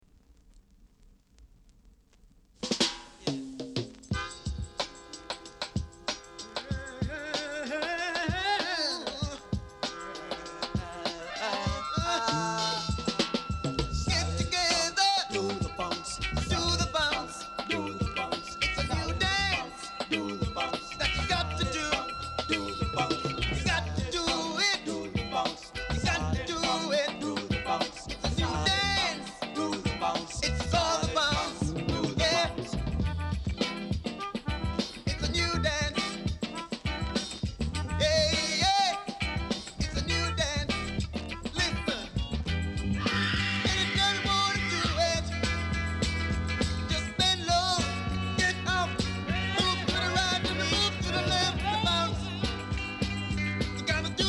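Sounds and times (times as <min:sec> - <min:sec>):
funk music: 0:01.9 - 0:54.2.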